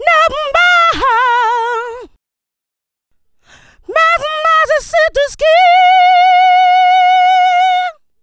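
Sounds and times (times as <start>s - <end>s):
funky vocals: 0.0s - 2.1s, 3.7s - 8.0s.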